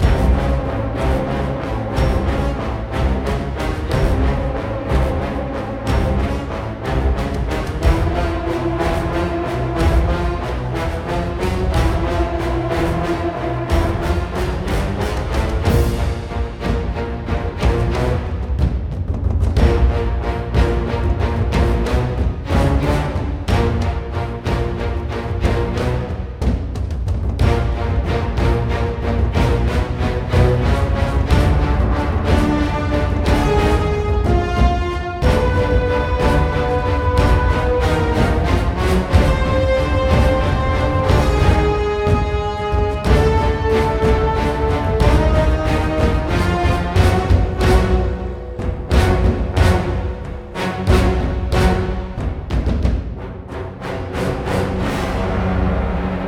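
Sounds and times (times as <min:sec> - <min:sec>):
frantic boss fight stage music: 0:00.0 - 0:56.2.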